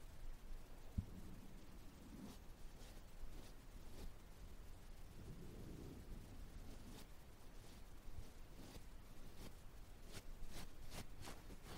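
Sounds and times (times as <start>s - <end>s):
low muffled rumbles: 0.7s - 9.3s
ear cleaning and massage soft rubbing: 1.0s - 11.7s.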